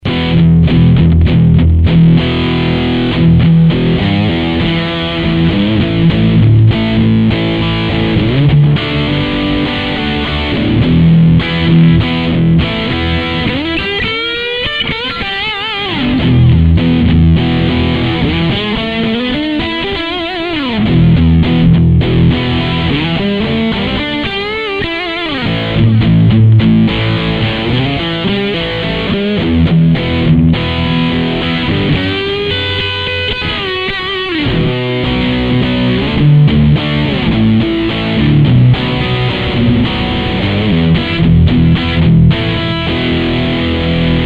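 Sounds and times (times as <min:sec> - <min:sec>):
electric guitar through a Mesa Boogie Dual Rectifier amplifier: 0:00.0 - 0:44.2.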